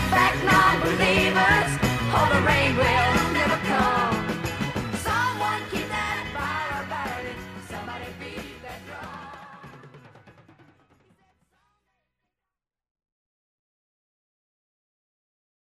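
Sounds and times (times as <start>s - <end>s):
country music: 0.0s - 9.7s.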